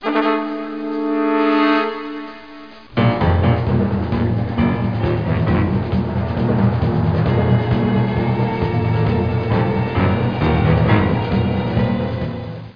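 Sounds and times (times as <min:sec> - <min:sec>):
theme music: 0:00.0 - 0:12.7.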